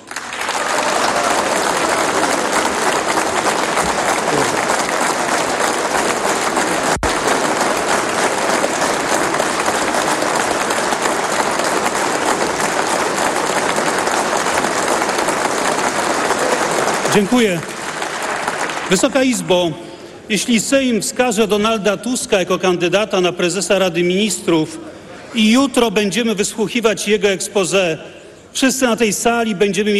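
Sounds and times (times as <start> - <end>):
parliament applause: 0.0 - 19.6
speech: 17.2 - 17.7, 18.9 - 29.9.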